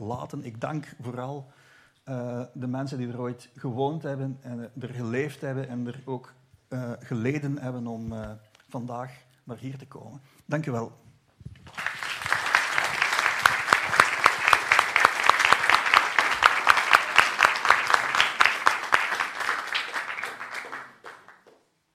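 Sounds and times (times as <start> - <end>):
speech: 0.0 - 11.0
warm audience applause: 11.6 - 21.6.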